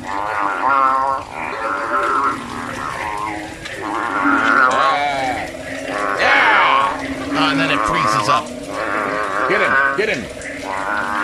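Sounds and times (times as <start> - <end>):
bullfrogs fighting: 0.0 - 11.2.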